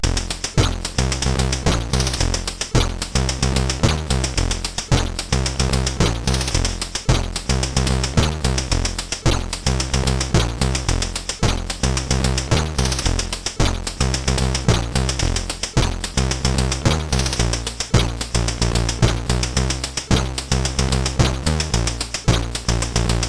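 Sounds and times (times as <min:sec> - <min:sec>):
funk played on a SID CSG8580R5 chip: 0:00.0 - 0:23.2.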